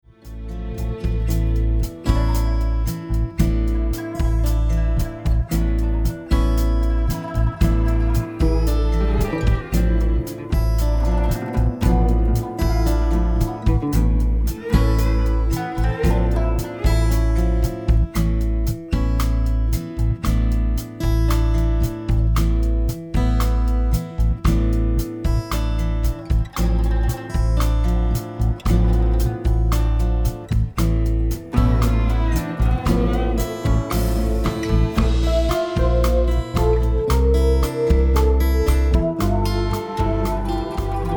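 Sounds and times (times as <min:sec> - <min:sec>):
guitar: 0:00.0 - 0:41.1.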